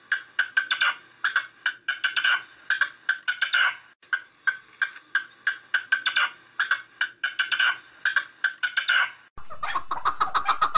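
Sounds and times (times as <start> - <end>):
partridge rough chucking notes: 0.4 - 10.7.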